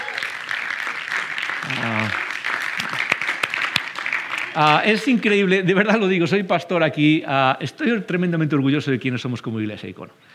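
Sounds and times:
audience applause: 0:00.0 - 0:05.5
speech: 0:04.6 - 0:10.3.

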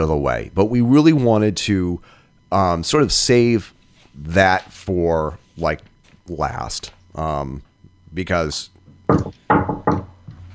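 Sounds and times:
speech: 0:00.0 - 0:09.4
sharp hollow knocks on a door: 0:09.1 - 0:10.1.

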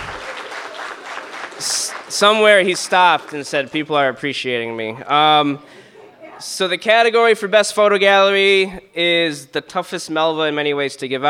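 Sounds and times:
round of applause: 0:00.0 - 0:03.9
speech: 0:01.6 - 0:05.8, 0:06.4 - 0:11.2.

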